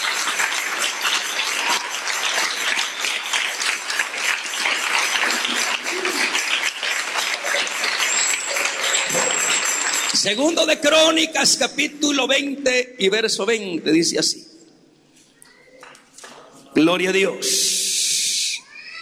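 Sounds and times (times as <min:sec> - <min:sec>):
audience applause: 0:00.0 - 0:10.6
speech: 0:10.2 - 0:14.5, 0:16.9 - 0:17.6.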